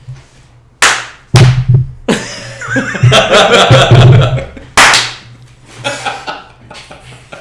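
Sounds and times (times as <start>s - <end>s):
hand clap: 0.8s - 1.7s, 4.8s - 5.3s
laughter: 2.1s - 4.8s, 5.8s - 7.4s.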